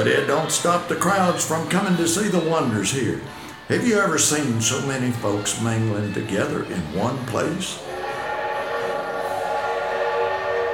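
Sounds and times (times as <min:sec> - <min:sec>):
speech: 0:00.0 - 0:08.0
large Corliss steam engine running: 0:07.7 - 0:10.7.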